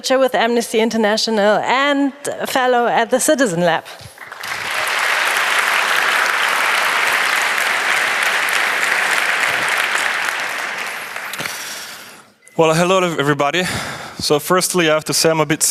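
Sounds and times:
speech: 0.0 - 4.6, 12.6 - 15.6
audience applause: 4.2 - 12.1.

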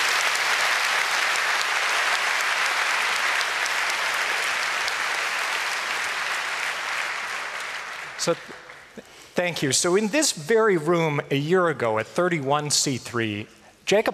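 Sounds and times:
audience applause: 0.0 - 9.3
speech: 8.2 - 14.1.

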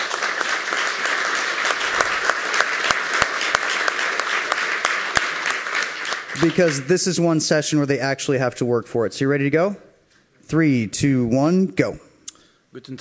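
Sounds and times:
audience applause: 0.0 - 7.4
speech: 6.4 - 9.9, 10.5 - 12.0, 12.7 - 12.9.

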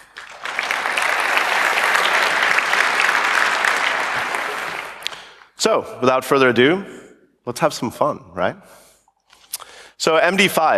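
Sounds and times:
audience applause: 0.0 - 5.4
speech: 5.6 - 8.8, 10.0 - 10.7.

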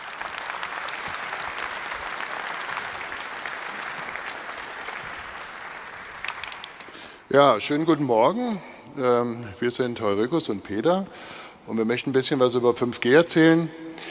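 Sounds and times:
audience applause: 0.0 - 7.3
speech: 7.3 - 14.0.

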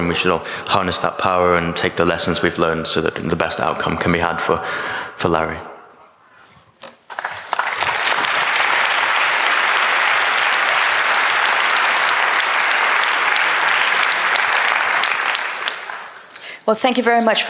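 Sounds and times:
speech: 0.0 - 5.7, 16.7 - 17.4
audience applause: 7.1 - 16.4.

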